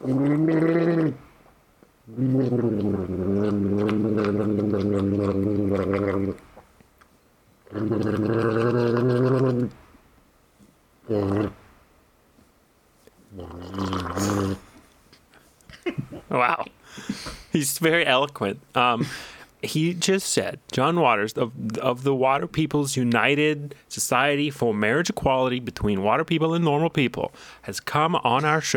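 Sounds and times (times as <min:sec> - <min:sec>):
voice making bubbly gurgling noises: 0:00.0 - 0:01.2, 0:02.1 - 0:06.4, 0:07.6 - 0:09.8, 0:11.0 - 0:11.6, 0:13.3 - 0:14.7
speech: 0:17.7 - 0:28.7.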